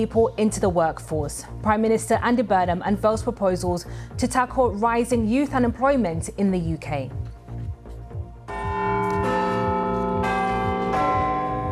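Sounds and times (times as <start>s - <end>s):
speech: 0.0s - 7.2s
Big Ben clock bell chiming: 8.5s - 11.7s.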